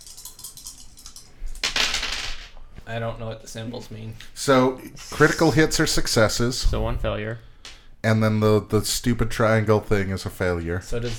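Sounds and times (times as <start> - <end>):
handful of dice rattling: 0.0 - 2.5
speech: 2.9 - 11.1.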